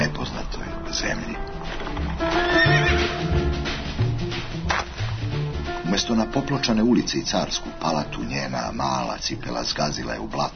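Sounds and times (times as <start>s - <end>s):
speech: 1.0s - 1.4s, 6.0s - 10.5s
horse hooves clip-clopping: 1.4s - 6.0s
horses escorting a carriage neighing: 2.1s - 3.3s.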